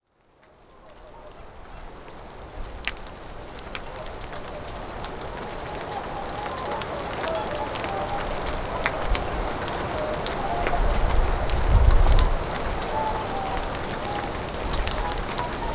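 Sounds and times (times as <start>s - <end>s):
whooper swans honking in the rain: 4.0s - 15.7s.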